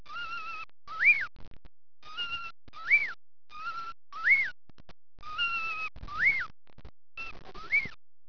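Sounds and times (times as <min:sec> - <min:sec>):
animal cry: 0:00.0 - 0:01.3, 0:02.0 - 0:04.6, 0:05.2 - 0:06.5, 0:07.2 - 0:08.0.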